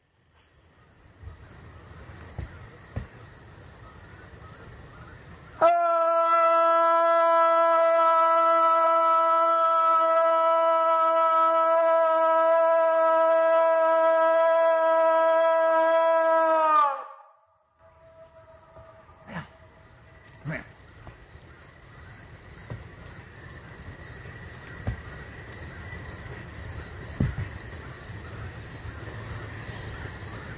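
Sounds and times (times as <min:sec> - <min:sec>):
insects chirping: 0:00.0 - 0:17.2, 0:17.8 - 0:30.5
Illinois Howl loud nighttime howl: 0:05.6 - 0:19.8.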